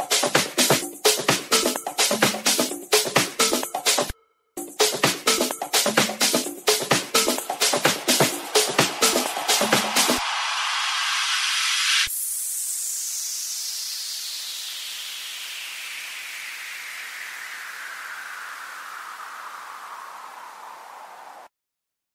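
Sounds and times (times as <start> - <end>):
dance and EDM music: 0.0 - 12.1.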